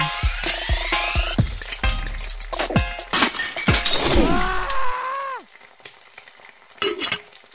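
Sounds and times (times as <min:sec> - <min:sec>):
hash browns frying in a pan: 0:00.1 - 0:07.5.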